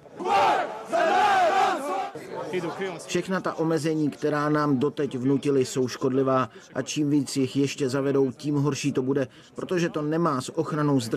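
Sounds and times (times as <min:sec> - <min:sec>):
large protest march crowd chanting in unison: 0:00.0 - 0:02.4
speech: 0:02.5 - 0:11.1.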